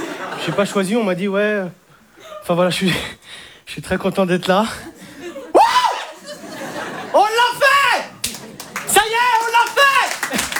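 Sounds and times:
laughter: 0:00.0 - 0:00.9, 0:04.8 - 0:10.5
speech: 0:00.3 - 0:01.8, 0:02.4 - 0:04.9
audience applause: 0:07.2 - 0:10.5.

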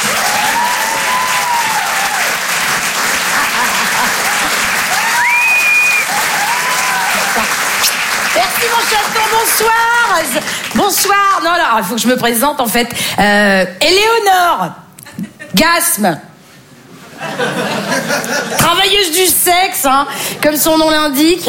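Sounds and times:
stand-up comedy audience clapping and cheering: 0:00.0 - 0:11.3
laughter: 0:03.0 - 0:04.9, 0:17.0 - 0:18.7
speech: 0:08.9 - 0:14.8, 0:15.6 - 0:16.3, 0:17.2 - 0:21.4.

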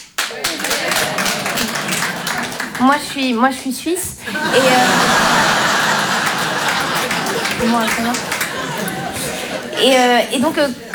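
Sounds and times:
audience clapping: 0:00.0 - 0:10.9
laughter: 0:00.3 - 0:10.9
speech: 0:02.8 - 0:05.4, 0:07.6 - 0:08.9, 0:09.8 - 0:10.8.

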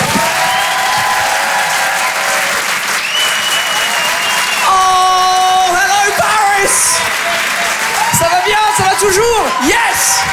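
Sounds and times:
comedy club audience in Paris applauding: 0:00.0 - 0:10.3
whistle: 0:03.0 - 0:05.2.

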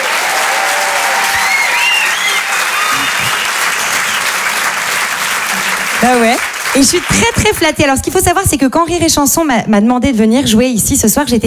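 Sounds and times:
audience applause: 0:00.0 - 0:08.0
speech: 0:06.1 - 0:11.4.

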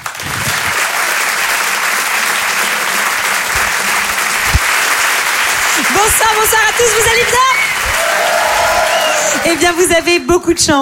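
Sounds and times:
audience applause: 0:00.0 - 0:10.6
speech: 0:06.0 - 0:07.6, 0:09.4 - 0:10.7.

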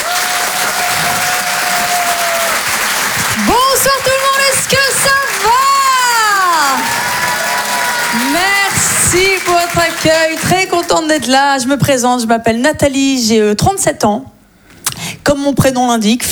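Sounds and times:
audience clapping at a French stand-up comedy show: 0:00.0 - 0:11.7
speech: 0:03.4 - 0:05.7, 0:08.1 - 0:14.4, 0:15.2 - 0:16.2.

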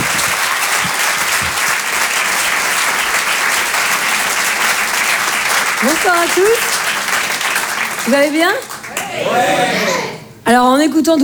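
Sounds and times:
audience applause: 0:00.0 - 0:10.3
laughter: 0:00.0 - 0:10.3
speech: 0:05.8 - 0:06.7, 0:08.0 - 0:11.2.

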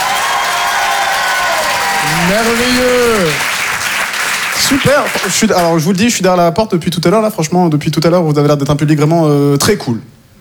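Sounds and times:
scattered whoops: 0:00.0 - 0:03.5
audience clapping: 0:00.0 - 0:06.0
speech: 0:02.2 - 0:03.5, 0:04.6 - 0:10.2.

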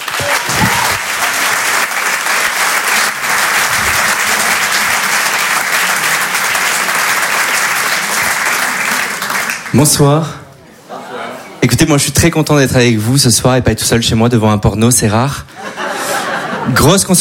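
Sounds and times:
audience applause at a comedy club: 0:00.0 - 0:10.0
crowd noise: 0:00.0 - 0:17.1
speech: 0:09.8 - 0:10.4, 0:11.7 - 0:15.5, 0:16.7 - 0:17.1
laughter: 0:10.7 - 0:11.6, 0:15.5 - 0:17.1.

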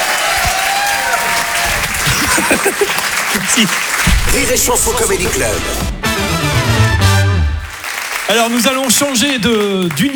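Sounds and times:
cheers and whoops: 0:00.0 - 0:04.0
audience applause: 0:00.0 - 0:10.1
laughter: 0:00.9 - 0:05.8
speech: 0:02.7 - 0:06.0, 0:08.3 - 0:10.1.

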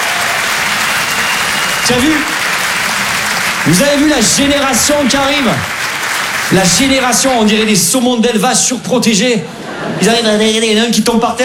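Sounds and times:
voice cheering: 0:00.0 - 0:07.4
crowd applauding: 0:00.0 - 0:08.0
speech: 0:01.9 - 0:02.4, 0:03.6 - 0:05.8, 0:06.5 - 0:11.4.

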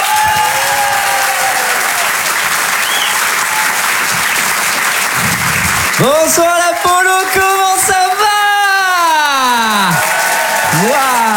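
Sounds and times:
audience applause for a stand-up comedian: 0:00.0 - 0:11.3
whistle: 0:02.8 - 0:03.3
speech: 0:06.0 - 0:07.5.

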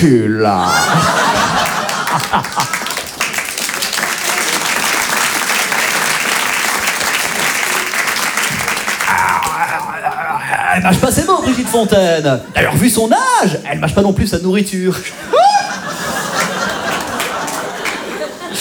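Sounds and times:
speech: 0:00.0 - 0:01.2, 0:02.2 - 0:02.8, 0:10.8 - 0:15.3
laughter: 0:00.5 - 0:03.1, 0:09.1 - 0:12.9, 0:15.1 - 0:18.5
audience applause: 0:00.7 - 0:11.1, 0:15.3 - 0:18.5.

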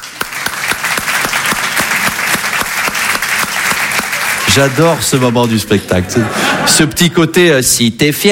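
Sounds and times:
stand-up comedy audience applauding: 0:00.0 - 0:06.8
laughter: 0:03.9 - 0:07.4
speech: 0:04.5 - 0:08.3.

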